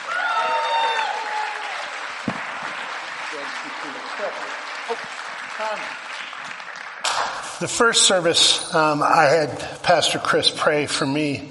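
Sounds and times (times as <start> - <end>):
audience applause at a church service welcoming a speaker: 0.0 - 8.9
speech: 4.2 - 6.1, 7.6 - 11.4.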